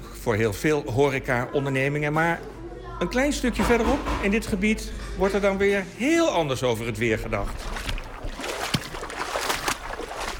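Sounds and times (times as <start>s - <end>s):
speech: 0.2s - 7.7s
water sloshing in a large pool in nature area Stroothuizen: 6.8s - 10.3s.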